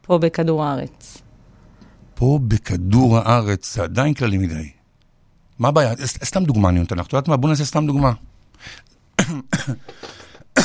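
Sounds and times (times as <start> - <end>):
speech: 0.1 - 1.2, 2.2 - 4.8, 5.6 - 10.2
person coughing: 9.2 - 10.6.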